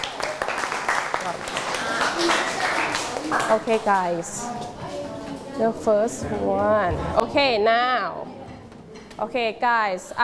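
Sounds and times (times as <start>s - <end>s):
children clapping hands: 0.0s - 4.1s
speech: 3.3s - 5.0s, 5.6s - 8.3s, 9.2s - 10.2s.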